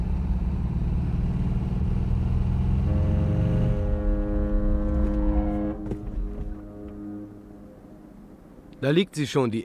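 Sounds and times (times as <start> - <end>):
car engine rumble driving toward the harbour of Helsingborg: 0.0 - 9.6
sustained droning horn-like tone: 2.8 - 8.6
speech: 8.8 - 9.6.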